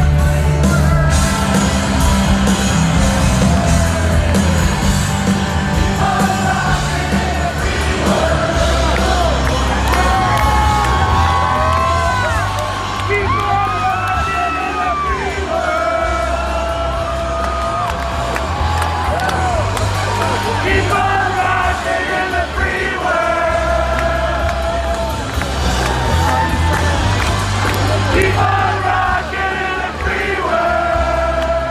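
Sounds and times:
large crowd singing unamplified after power cut: 0:00.0 - 0:31.7
shouts and whoops: 0:09.7 - 0:15.3, 0:16.1 - 0:20.6, 0:24.9 - 0:27.3.

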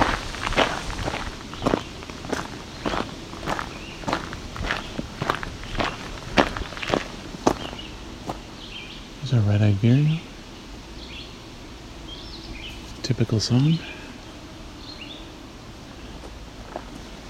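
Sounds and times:
footsteps walking into the woods: 0:00.0 - 0:08.6, 0:16.2 - 0:17.2
speech: 0:09.4 - 0:10.2, 0:13.1 - 0:13.9.

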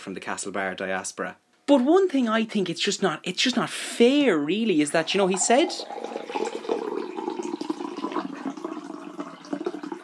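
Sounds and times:
speech: 0:00.0 - 0:06.4
drink being poured into a glass: 0:05.0 - 0:10.0.

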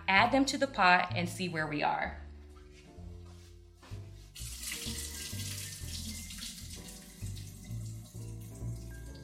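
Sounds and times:
speech: 0:00.1 - 0:02.2
draining boiled potatoes in a colander: 0:04.4 - 0:09.2.

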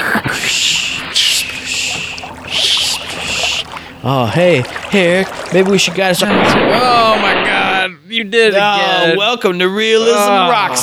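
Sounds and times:
canoe being launched into water: 0:00.4 - 0:07.1
speech: 0:04.0 - 0:07.6, 0:08.2 - 0:10.8.

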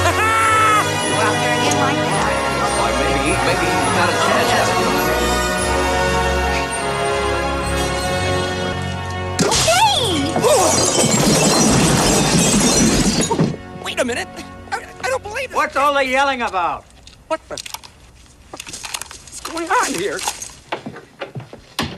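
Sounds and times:
music: 0:00.0 - 0:16.1
lawn ornaments being smashed and torn up: 0:09.1 - 0:13.8, 0:17.5 - 0:20.8
speech: 0:15.9 - 0:17.7, 0:19.5 - 0:20.4.

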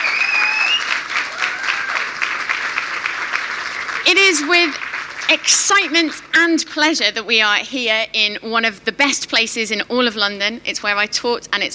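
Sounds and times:
high whistle: 0:00.0 - 0:01.0
crowd applause: 0:00.0 - 0:06.4
speech: 0:04.1 - 0:11.7.

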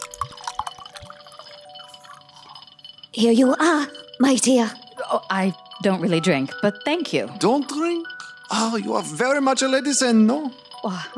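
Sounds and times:
burgundy wine pouring into a glass: 0:00.0 - 0:02.6
wine dripping: 0:00.0 - 0:02.8
speech: 0:03.2 - 0:11.1.

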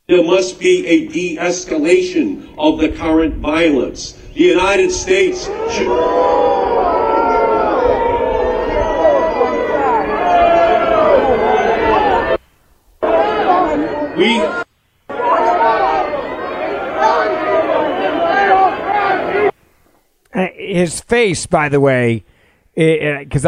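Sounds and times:
speech: 0:00.1 - 0:06.6, 0:20.8 - 0:23.4
crowd booing a speaker: 0:04.4 - 0:12.4, 0:13.0 - 0:19.6.

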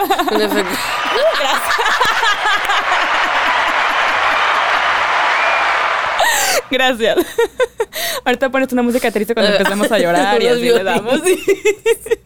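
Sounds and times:
speech: 0:00.0 - 0:03.3, 0:06.7 - 0:12.2
laughter: 0:00.0 - 0:08.2, 0:09.7 - 0:12.2
applause sound effect: 0:00.3 - 0:06.8.

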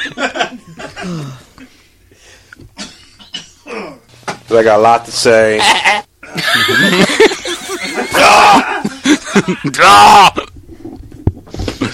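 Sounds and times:
man clearing his throat: 0:00.8 - 0:01.4, 0:02.8 - 0:04.1
speech: 0:01.0 - 0:01.4, 0:04.5 - 0:07.1, 0:09.4 - 0:10.5
laughter: 0:05.6 - 0:10.1.

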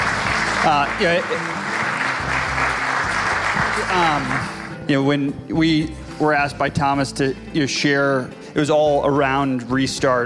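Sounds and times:
audience applause: 0:00.0 - 0:04.8
speech: 0:00.6 - 0:02.4, 0:03.8 - 0:10.2.

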